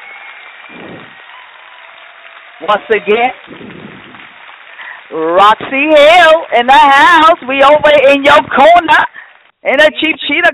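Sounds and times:
audience applause: 0.0s - 7.6s
speech: 2.6s - 3.8s, 5.1s - 10.5s.

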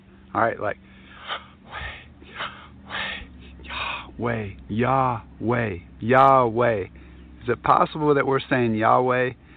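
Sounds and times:
speech: 0.3s - 1.8s, 3.7s - 9.4s
person breathing in and out: 0.8s - 4.2s.

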